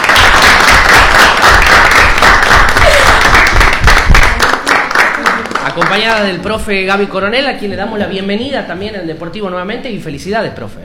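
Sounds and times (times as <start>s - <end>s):
loud applause: 0.0s - 6.2s
speech: 5.9s - 10.8s.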